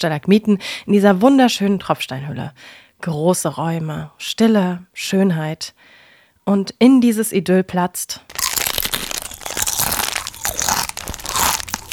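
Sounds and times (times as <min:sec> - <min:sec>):
speech: 0:00.0 - 0:08.4
person crunching potato chips: 0:08.3 - 0:11.9.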